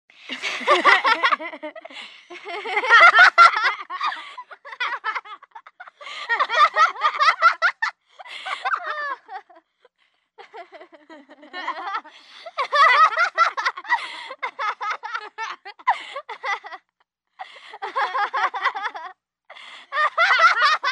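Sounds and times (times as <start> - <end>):
three children laughing: 0.3 - 9.6, 10.4 - 16.9, 17.5 - 19.2, 19.8 - 20.8.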